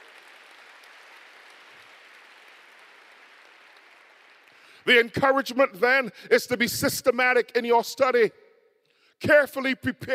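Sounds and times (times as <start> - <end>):
audience clapping: 0.0 - 5.1
speech: 4.8 - 8.4, 9.2 - 10.1.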